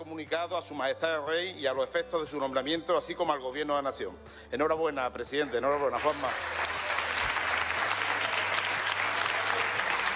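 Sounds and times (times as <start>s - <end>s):
speech: 0.1s - 6.7s
parliament chamber applause: 5.9s - 10.1s.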